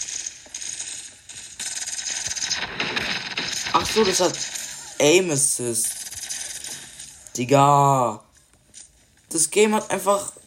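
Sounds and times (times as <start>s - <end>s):
automatic gunfire in a video game: 0.0s - 7.4s
speech: 3.8s - 6.0s, 7.4s - 8.3s, 9.3s - 10.4s.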